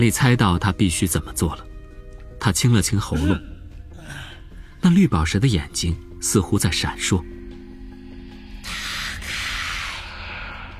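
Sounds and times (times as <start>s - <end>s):
speech: 0.0s - 1.7s, 2.4s - 3.5s, 4.8s - 7.4s
voice imitating a snake with a hoarse breathy hiss: 8.4s - 10.7s.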